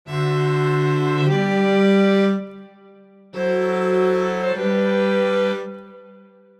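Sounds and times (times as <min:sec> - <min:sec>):
chord progression: 0:00.1 - 0:06.4.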